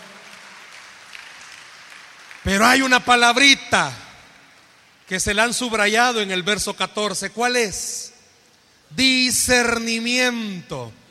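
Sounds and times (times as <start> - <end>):
audience applauding: 0.0 - 3.0
speech: 2.4 - 4.0, 5.1 - 8.1, 8.9 - 11.0.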